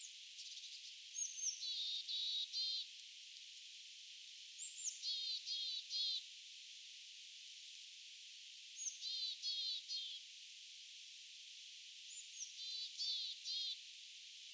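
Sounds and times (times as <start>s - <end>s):
small birds on an island: 0.0s - 3.8s, 4.4s - 6.4s, 8.6s - 10.4s, 12.0s - 14.5s.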